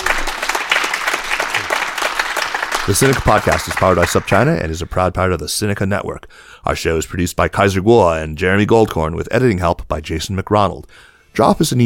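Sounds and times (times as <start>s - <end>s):
audience applause: 0.0s - 4.6s
speech: 2.9s - 11.8s.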